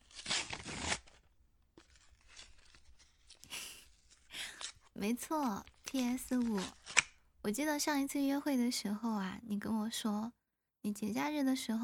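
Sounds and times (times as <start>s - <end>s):
paper tearing and crinkling as a PS5 gift package is unwrapped: 0.0s - 7.2s
speech: 5.0s - 6.8s, 7.4s - 11.8s.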